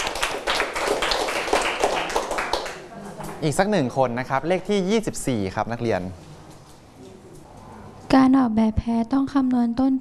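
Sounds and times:
students clapping: 0:00.0 - 0:03.4
speech: 0:03.4 - 0:06.2, 0:08.1 - 0:10.0.

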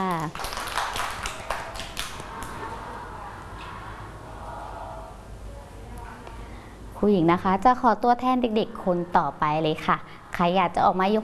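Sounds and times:
speech: 0:00.0 - 0:00.5, 0:07.0 - 0:11.2
group of children clapping: 0:00.0 - 0:02.8
steady murmur: 0:01.2 - 0:07.0.

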